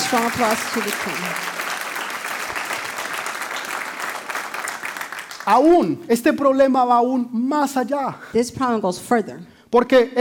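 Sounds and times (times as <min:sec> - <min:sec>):
crowd applause: 0:00.0 - 0:05.5
speech: 0:00.1 - 0:01.6, 0:05.5 - 0:10.1.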